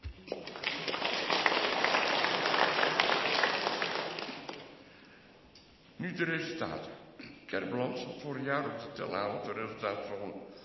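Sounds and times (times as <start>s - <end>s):
audience applause: 0.3s - 4.7s
speech: 6.2s - 10.6s.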